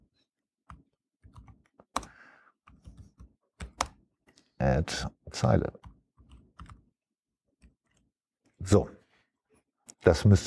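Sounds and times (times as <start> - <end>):
typing program code on a computer keyboard: 0.7 - 4.1, 5.8 - 7.0
speech: 4.6 - 5.8, 8.7 - 9.0, 10.0 - 10.4.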